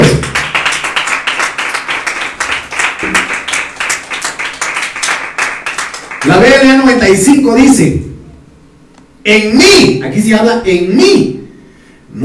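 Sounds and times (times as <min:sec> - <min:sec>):
audience clapping: 0:00.0 - 0:06.9
speech: 0:06.2 - 0:08.1, 0:09.2 - 0:11.4.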